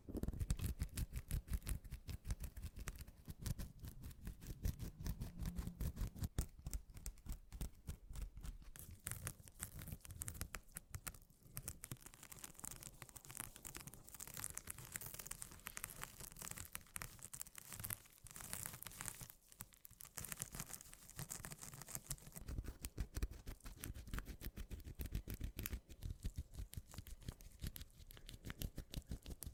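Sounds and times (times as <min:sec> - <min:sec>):
rapid papery mini scratching: 0:00.2 - 0:29.5.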